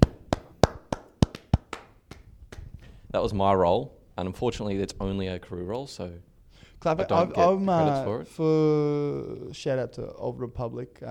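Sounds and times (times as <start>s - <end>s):
person imitating sitcom-style studio audience clapping: 0.0s - 2.8s
speech: 3.1s - 11.0s.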